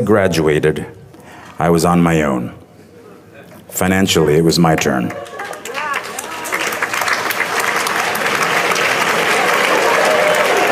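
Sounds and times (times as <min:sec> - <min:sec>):
speech: 0:00.0 - 0:01.0, 0:01.6 - 0:02.6, 0:03.7 - 0:05.3
crowd applauding: 0:04.7 - 0:10.6.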